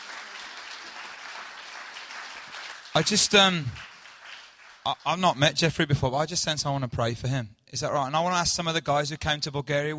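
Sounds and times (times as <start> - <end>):
audience clapping: 0.0 - 5.8
speech: 3.0 - 3.9, 4.8 - 9.9.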